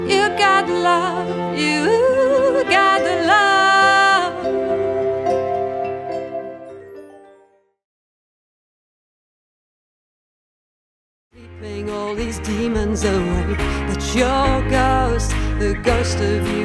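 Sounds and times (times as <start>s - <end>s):
modern chart pop music: 0.0s - 6.3s, 11.4s - 16.6s.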